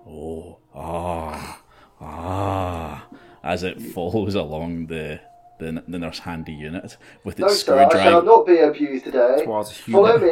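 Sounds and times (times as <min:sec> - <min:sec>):
voice imitating a ghoul's pleased grunts: 0:00.0 - 0:04.1
speech: 0:03.5 - 0:10.3.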